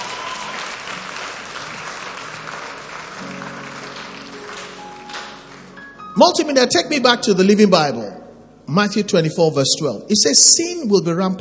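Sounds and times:
audience clapping in a hall: 0.0 - 6.1
speech: 6.2 - 11.3.

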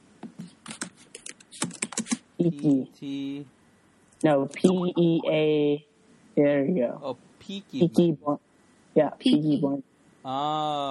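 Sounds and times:
typing on a computer keyboard: 0.4 - 2.2
speech: 2.4 - 3.6, 4.2 - 10.8.

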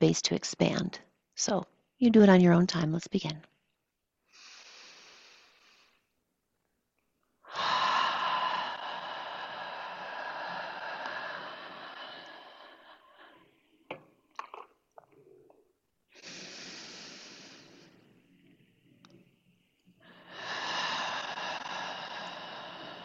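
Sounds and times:
speech: 0.0 - 3.5
soft inhale through the nose: 4.3 - 6.0, 7.5 - 13.5, 16.2 - 18.0, 20.0 - 23.0.

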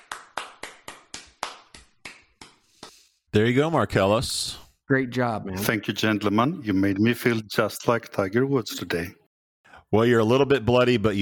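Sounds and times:
slow golf clap: 0.0 - 3.0
speech: 3.3 - 9.2, 9.9 - 11.2.

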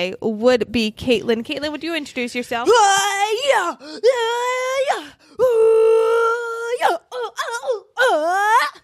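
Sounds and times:
speech: 0.0 - 5.8, 6.8 - 8.8
person screaming: 2.7 - 8.8.

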